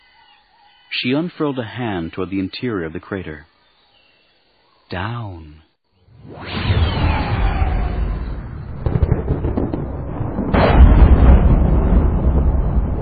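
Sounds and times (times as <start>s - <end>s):
speech: 1.0s - 3.5s, 4.9s - 5.6s
thunder crash: 6.2s - 13.0s
deep rumbling: 6.4s - 13.0s.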